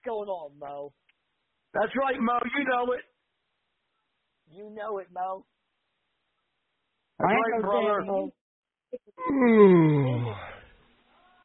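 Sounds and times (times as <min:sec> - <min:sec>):
speech: 0:00.1 - 0:03.1, 0:04.5 - 0:05.6, 0:07.2 - 0:10.6
person yawning loudly with a voiced groan: 0:09.2 - 0:10.7.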